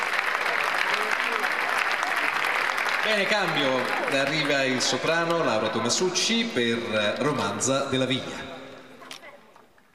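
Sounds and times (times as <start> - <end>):
audience applause at an orchestral concert in Loreto: 0.0 - 6.0
speech: 3.0 - 8.5.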